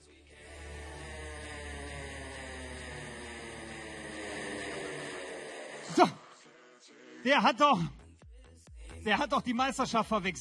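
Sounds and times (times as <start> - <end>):
motor being started up: 0.3 - 6.5
speech: 6.0 - 6.2, 7.2 - 8.0, 9.0 - 10.4.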